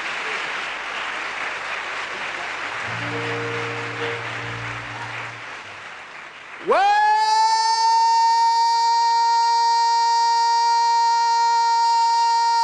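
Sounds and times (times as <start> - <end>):
audience clapping: 0.0 - 12.6
low sustained instrumental tone: 2.9 - 5.7.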